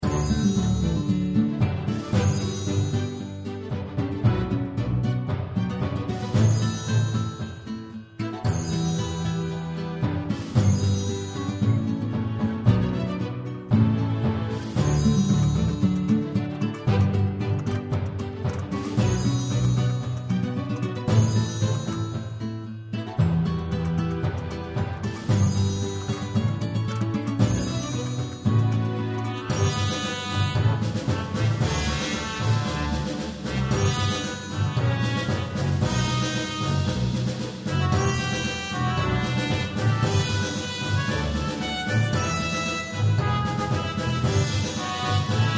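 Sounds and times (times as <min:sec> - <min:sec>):
music: 0:00.0 - 0:45.5.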